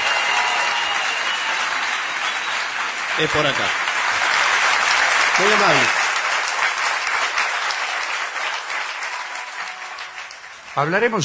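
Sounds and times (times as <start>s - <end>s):
theatre audience ovation at Teatro Caras y Caretas: 0.0s - 11.2s
speech: 3.2s - 3.8s, 5.4s - 6.0s, 10.8s - 11.2s.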